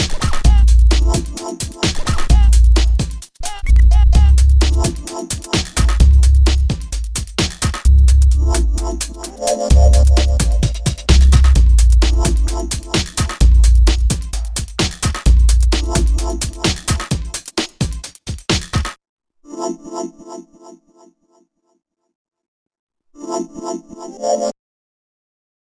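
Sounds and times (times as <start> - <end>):
instrumental music: 0.0 - 18.9.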